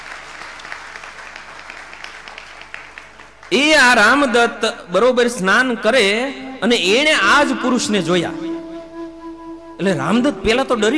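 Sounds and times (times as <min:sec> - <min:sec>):
assembly audience applause at a gurukul in Rajkot welcoming a swami: 0:00.0 - 0:03.5
speech: 0:03.5 - 0:08.5, 0:09.8 - 0:10.9.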